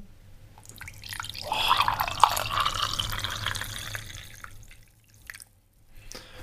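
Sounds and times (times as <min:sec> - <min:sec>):
tea pouring into a cup: 0:00.6 - 0:05.5.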